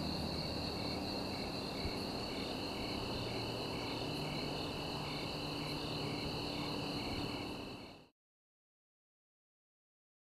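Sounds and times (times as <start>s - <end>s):
crickets chirping at night: 0.0s - 8.1s.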